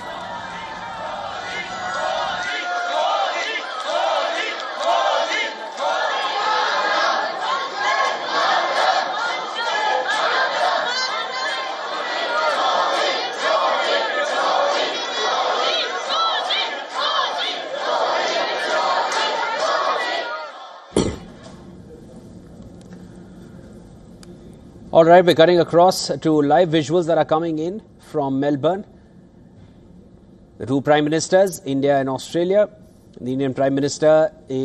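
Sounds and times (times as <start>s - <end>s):
Indian diaspora crowd in Melbourne chanting slogans to welcome Modi: 0.0s - 21.0s
speech: 25.0s - 29.0s, 30.6s - 34.6s.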